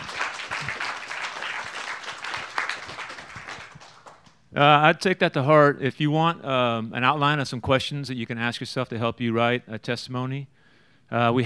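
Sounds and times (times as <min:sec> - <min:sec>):
audience applause: 0:00.0 - 0:04.3
speech: 0:04.6 - 0:11.4.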